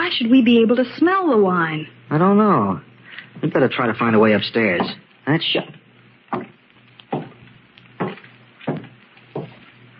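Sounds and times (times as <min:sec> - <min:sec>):
speech: 0:00.1 - 0:06.5
footsteps upstairs, woody knocks: 0:06.3 - 0:09.9.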